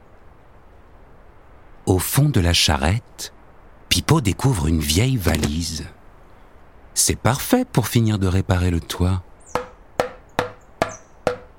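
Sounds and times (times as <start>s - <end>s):
speech: 2.0s - 3.4s, 4.0s - 6.0s, 7.0s - 9.3s
hammer blows: 9.6s - 11.5s.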